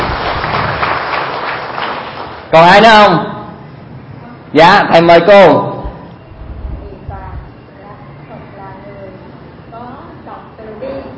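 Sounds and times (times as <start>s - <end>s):
group applause: 0.0s - 2.5s
speech: 2.5s - 3.3s, 4.5s - 5.7s.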